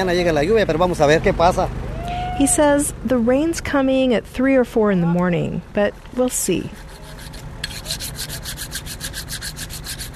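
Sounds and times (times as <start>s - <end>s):
speech: 0.0s - 1.8s, 2.4s - 6.8s
sharpening a small curved knife: 6.7s - 10.1s.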